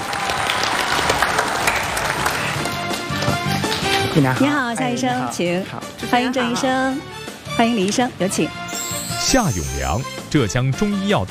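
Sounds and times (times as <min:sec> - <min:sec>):
studio audience applause: 0:00.0 - 0:04.1
speech: 0:04.2 - 0:08.6, 0:09.2 - 0:11.3.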